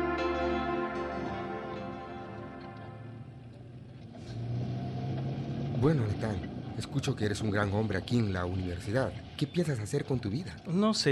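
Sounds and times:
car engine driving and accelerating: 0.2s - 8.7s
speech: 5.8s - 11.1s.

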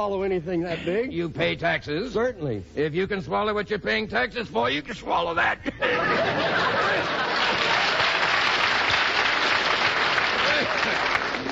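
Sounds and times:
speech: 0.0s - 7.7s
laughter: 4.9s - 8.5s, 10.3s - 11.5s
crowd applauding: 6.2s - 11.5s.

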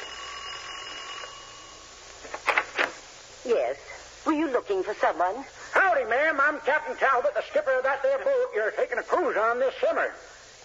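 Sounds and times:
doorbell ringing: 0.0s - 2.0s
low hiss: 0.0s - 10.6s
speech: 3.4s - 10.6s.

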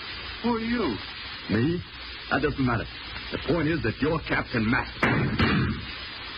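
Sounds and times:
speech: 0.4s - 5.5s
pistol gunshot: 5.0s - 5.8s.

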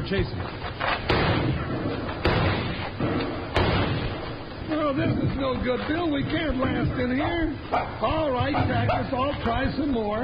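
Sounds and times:
dense wash of noise: 0.0s - 10.2s
speech: 0.1s - 1.1s, 4.9s - 10.2s
rifle gunfire in a radio drama: 1.0s - 4.6s.

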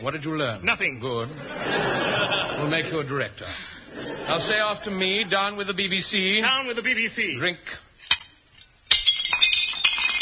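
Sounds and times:
speech: 0.0s - 7.8s
laughter: 1.3s - 5.6s
drinking glasses smashed in a fireplace: 8.0s - 10.2s
ringing tinkles of glass shards: 8.9s - 10.2s.

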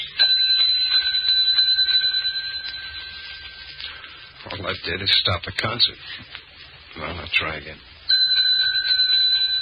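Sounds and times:
desk service bell ringing: 0.2s - 4.5s, 8.1s - 9.5s
speech: 4.7s - 6.4s, 7.0s - 7.9s.

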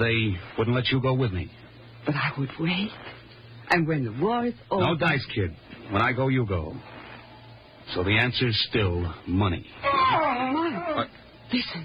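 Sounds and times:
speech: 0.0s - 6.9s, 7.9s - 11.8s
injured person moaning: 9.8s - 11.2s.

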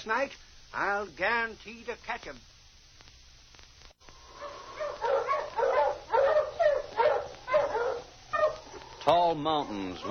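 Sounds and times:
speech: 0.0s - 2.5s, 9.1s - 10.1s
sled dogs barking: 4.3s - 8.8s, 9.6s - 10.1s.

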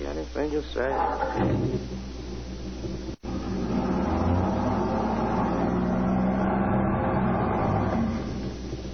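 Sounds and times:
speech: 0.3s - 2.2s
car engine being started: 0.9s - 2.0s, 2.8s - 8.9s.

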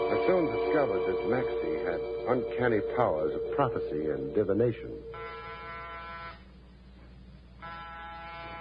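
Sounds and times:
speech: 0.2s - 5.2s
door buzzer ringing: 5.1s - 6.4s, 7.6s - 8.5s.

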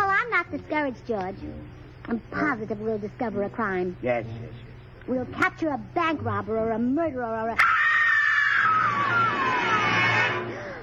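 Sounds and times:
speech: 0.6s - 7.7s
woman screaming: 7.6s - 10.6s.

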